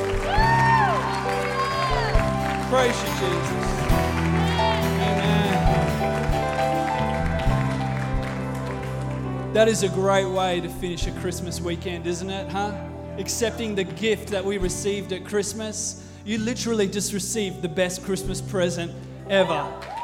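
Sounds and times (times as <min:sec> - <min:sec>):
scattered cheers and voices calling out: 0:00.0 - 0:06.0, 0:19.4 - 0:20.0
audience applauding: 0:00.0 - 0:10.4, 0:19.4 - 0:20.0
speech: 0:02.7 - 0:03.7, 0:09.6 - 0:20.0.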